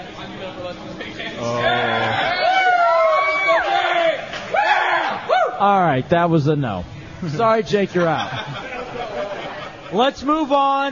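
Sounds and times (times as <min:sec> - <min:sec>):
speech: 0:00.6 - 0:01.9, 0:05.6 - 0:08.7, 0:09.9 - 0:10.9
audience cheering: 0:01.4 - 0:05.6
laughter: 0:07.8 - 0:10.3.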